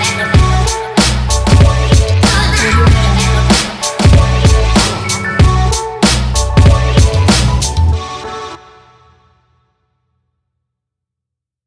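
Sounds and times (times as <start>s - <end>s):
hip hop music: 0.0s - 9.0s.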